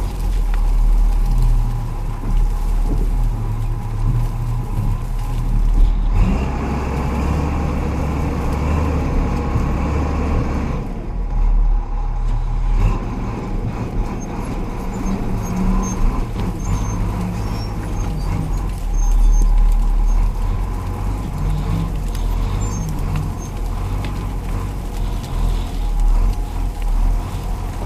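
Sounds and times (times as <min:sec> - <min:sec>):
bulldozer starting and driving through brush: 0:00.0 - 0:27.8
bulldozer tires crushing vegetation: 0:00.0 - 0:27.8
bulldozer metallic squeaks: 0:14.1 - 0:20.3.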